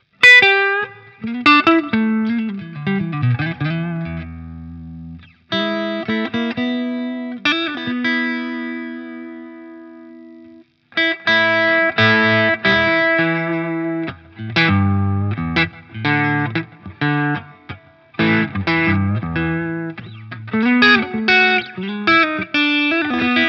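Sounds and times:
Stratocaster electric guitar neck pickup with gain: 0.0s - 23.4s.

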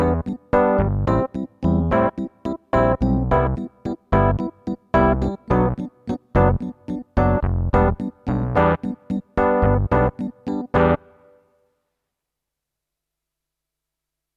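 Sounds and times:
electric piano: 0.0s - 11.4s.

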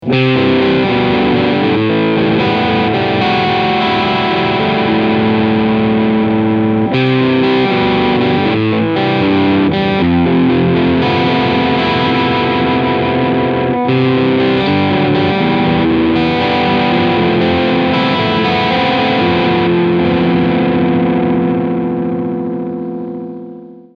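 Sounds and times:
Harley Benton ST 20HSS guitar crunch sound on middle and bridge pickup: 0.0s - 23.9s.

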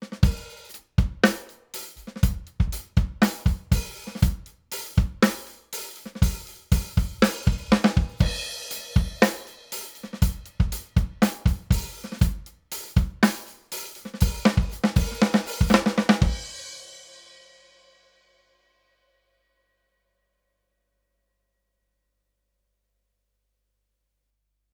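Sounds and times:
drums through Rupert Neve Designs 5254: 0.0s - 18.3s.

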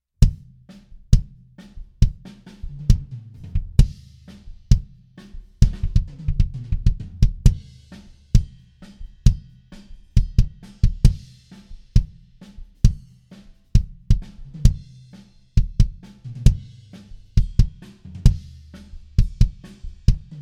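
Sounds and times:
kick drum: 0.2s - 4.0s, 4.6s - 5.0s, 5.6s - 7.7s, 9.2s - 9.6s, 10.2s - 11.2s, 11.9s - 13.0s, 13.8s - 14.9s, 15.6s - 16.7s, 17.4s - 18.5s, 19.2s - 20.3s.

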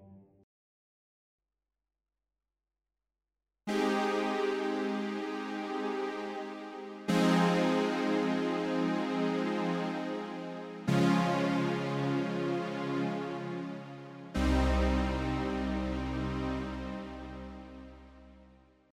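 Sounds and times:
Roland VR-09 synthesizer: 3.7s - 18.5s.

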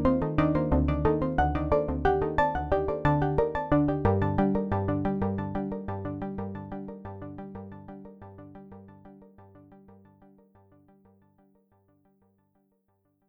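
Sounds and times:
iSEM clockwise arpeggio with delay effect: 0.0s - 9.3s.

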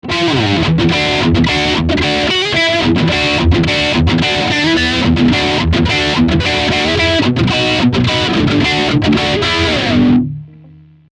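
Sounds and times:
electric guitar through Boss GT-10 R-Fier effect: 0.0s - 11.1s.

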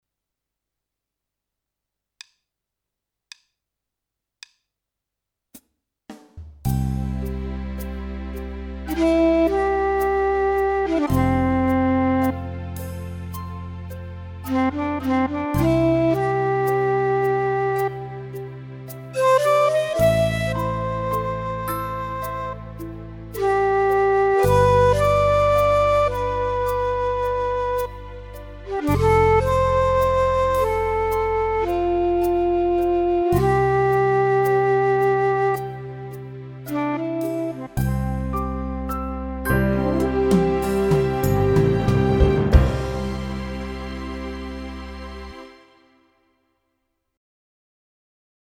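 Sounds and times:
Korg Pa1000 keyboard arranger style: 6.7s - 45.4s.

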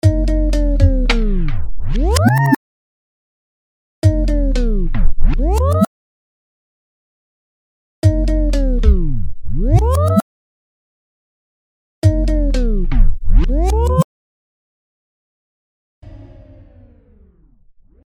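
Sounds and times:
TimeShaper 2 scratch effect: 0.5s - 2.6s, 4.2s - 5.9s, 8.4s - 10.2s, 12.3s - 14.0s.

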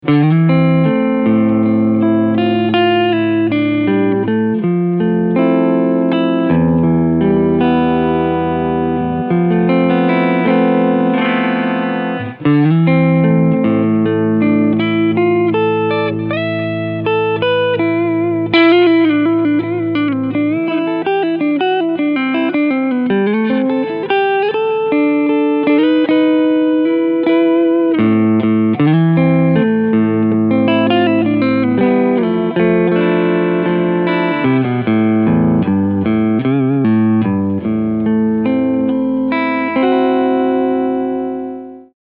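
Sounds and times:
clean guitar tone on front pickup: 0.0s - 42.0s.

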